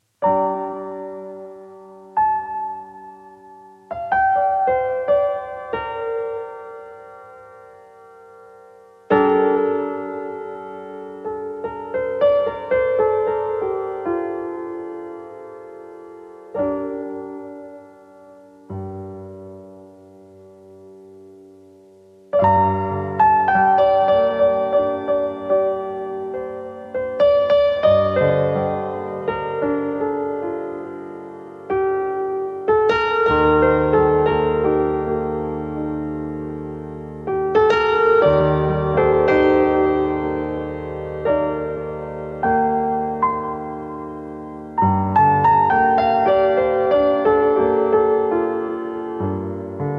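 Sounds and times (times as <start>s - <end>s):
piano music tuned to 432 Hz: 0.0s - 49.9s.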